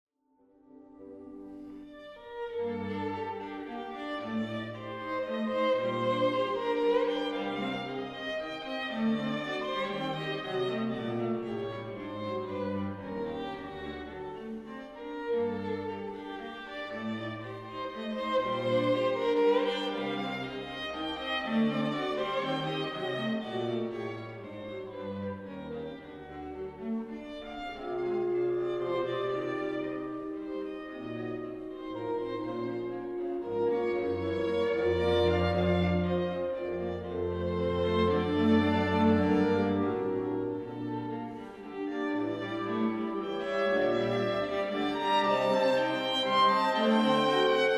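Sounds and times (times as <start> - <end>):
minuet: 0.6 - 47.7.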